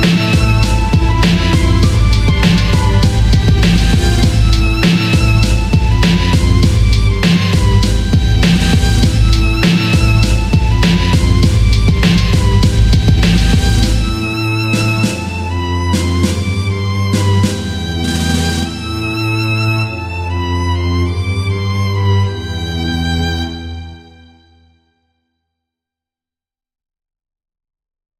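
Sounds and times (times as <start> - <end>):
beats: 0.0 - 19.2
violin: 0.0 - 25.0.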